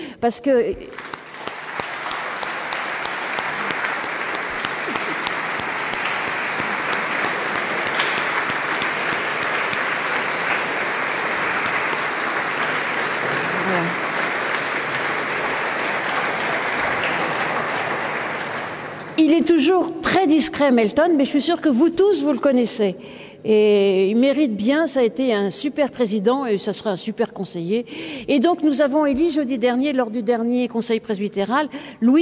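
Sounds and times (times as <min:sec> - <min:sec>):
speech: 0:00.2 - 0:01.1, 0:20.5 - 0:32.2
audience applause: 0:01.0 - 0:19.1.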